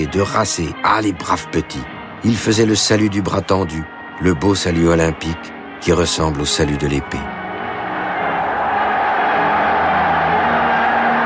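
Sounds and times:
speech: 0:00.0 - 0:07.4
large crowd applauding and cheering: 0:05.5 - 0:11.2.

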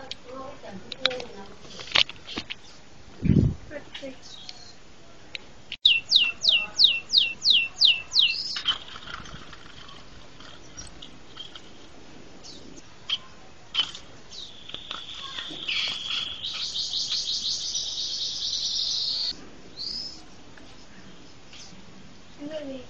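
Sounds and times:
bird singing high downslurred chirps and buzzy trills: 0:03.9 - 0:04.8, 0:05.8 - 0:11.6, 0:12.4 - 0:22.8.

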